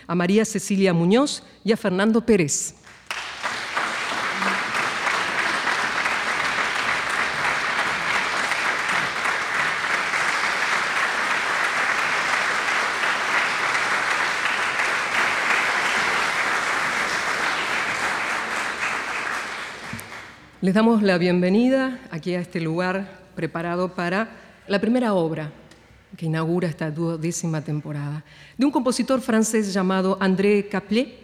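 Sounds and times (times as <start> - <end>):
speech: 0.1 - 3.2, 20.7 - 25.6, 26.2 - 31.2
audience applause: 2.9 - 20.5.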